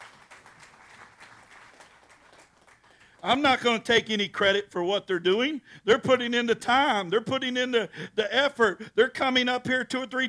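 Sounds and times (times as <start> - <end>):
crowd applauding for the band: 0.0 - 3.8
speech: 3.2 - 10.2.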